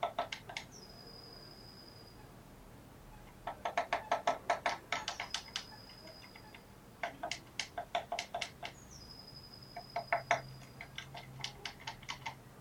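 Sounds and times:
Eurasian blue tit thin whistle and clicking notes: 3.6 - 12.5.

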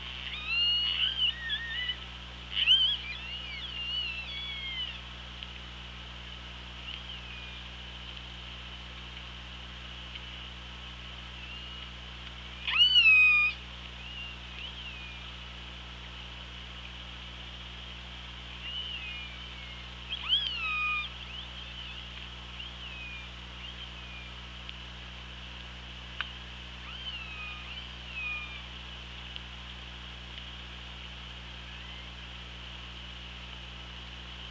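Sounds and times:
killer whale calls: 0.0 - 5.0, 12.6 - 15.2, 18.6 - 22.1, 26.8 - 28.7
steady background hum: 0.0 - 34.5.

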